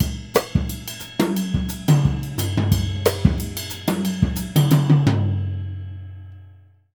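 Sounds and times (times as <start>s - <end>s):
jazz music: 0.0s - 5.4s.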